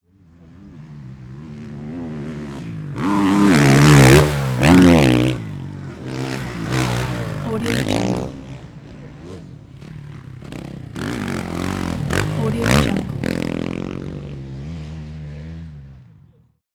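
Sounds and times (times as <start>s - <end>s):
motocross motorcycle passing by: 0.0s - 16.6s.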